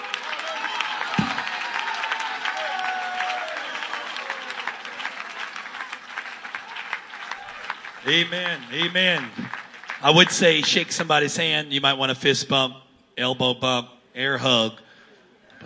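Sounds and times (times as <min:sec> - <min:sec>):
audience clapping and shouting: 0:00.0 - 0:11.4
speech: 0:08.1 - 0:14.8.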